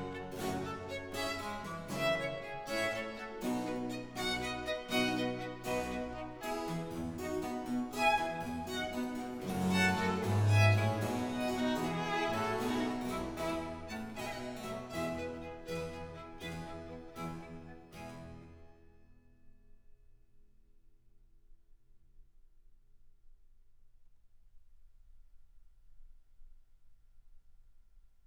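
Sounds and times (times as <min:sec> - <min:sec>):
sonata in F major allegro: 0:00.0 - 0:18.6.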